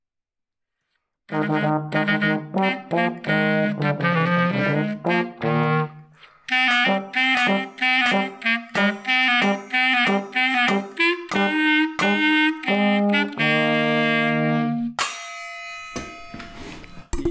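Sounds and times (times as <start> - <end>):
speech: 1.3 - 5.8
clarinet playing a brisk march: 1.3 - 15.0.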